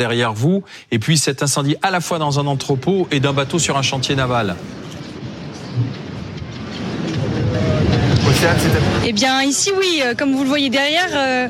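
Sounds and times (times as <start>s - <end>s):
speech: 0.0s - 5.0s, 8.4s - 11.4s
strong gusts of wind: 2.8s - 11.4s.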